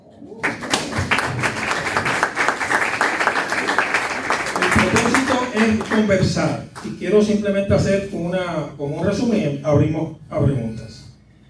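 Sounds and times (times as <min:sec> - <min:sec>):
applause: 0:00.4 - 0:06.2
speech: 0:05.6 - 0:10.9.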